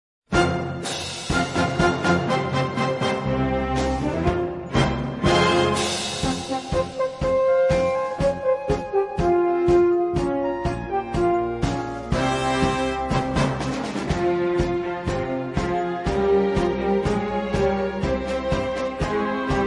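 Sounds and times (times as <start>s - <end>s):
instrumental music: 0.3s - 19.6s.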